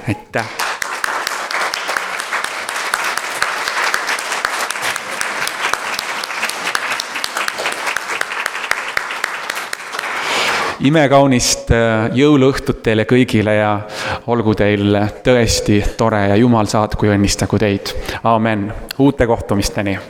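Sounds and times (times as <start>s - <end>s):
speech: 0.0s - 0.6s, 10.8s - 20.0s
applause: 0.4s - 10.8s.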